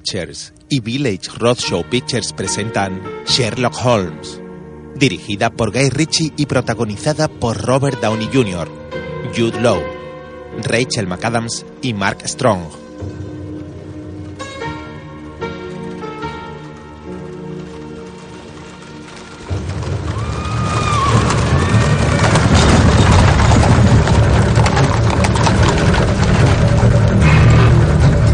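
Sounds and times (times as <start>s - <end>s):
speech: 0.0s - 4.4s, 5.0s - 13.2s
horse-drawn carriages galloping on cobblestones: 5.1s - 9.8s, 10.6s - 28.3s.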